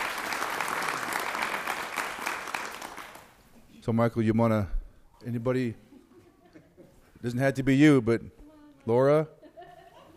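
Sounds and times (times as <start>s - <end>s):
audience applause: 0.0s - 3.4s
speech: 3.9s - 5.9s, 7.2s - 9.4s.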